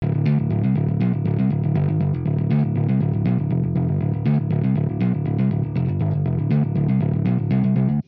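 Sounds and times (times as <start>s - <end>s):
amp wet bass: 0.0s - 8.0s
hybrid neural guitar overdrive: 0.0s - 8.0s.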